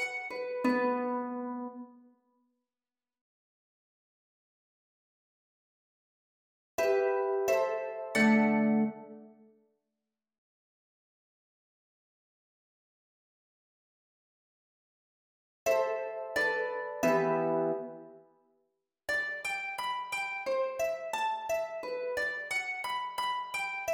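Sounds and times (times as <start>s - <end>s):
harp: 0.0s - 2.0s, 6.8s - 9.2s, 15.7s - 18.2s, 19.1s - 23.9s.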